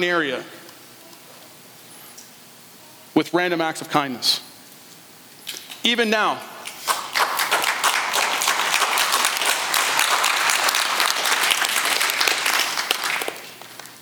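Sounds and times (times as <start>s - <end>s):
speech: 0.0s - 0.6s, 3.2s - 4.5s, 5.8s - 6.5s
church congregation clapping: 6.6s - 13.9s.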